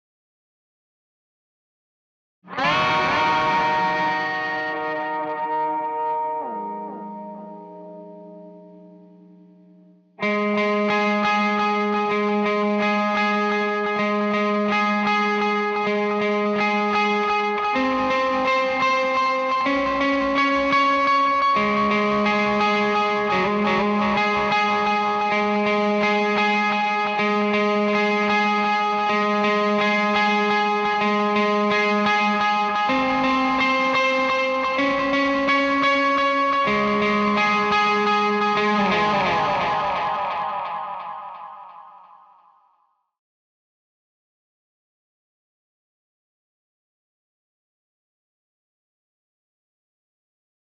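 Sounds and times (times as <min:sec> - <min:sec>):
guitar in C: 0:02.4 - 0:42.8.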